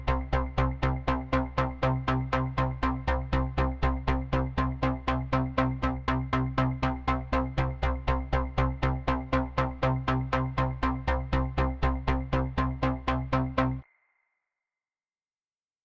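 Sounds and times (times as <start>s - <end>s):
pulsing underscore music: 0.0s - 13.8s.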